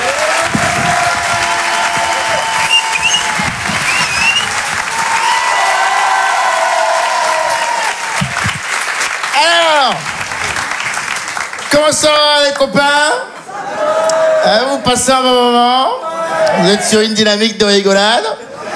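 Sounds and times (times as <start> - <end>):
comedy club audience applauding and cheering: 0.0 - 12.2
speech: 11.9 - 13.2, 14.5 - 18.4.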